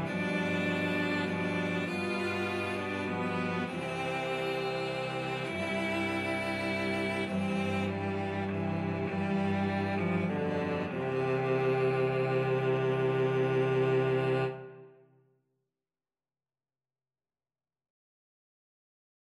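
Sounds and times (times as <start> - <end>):
cello quartet: 0.0 - 15.0.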